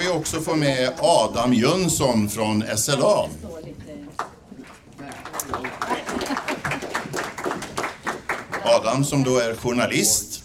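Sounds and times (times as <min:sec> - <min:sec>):
speech: 0:00.1 - 0:04.3, 0:08.7 - 0:10.4
audience applause: 0:05.0 - 0:09.4.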